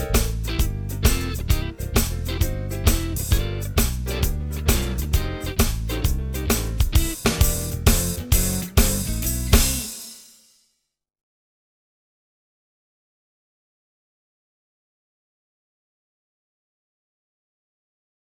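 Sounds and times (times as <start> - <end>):
instrumental blues music: 0.0 - 10.2.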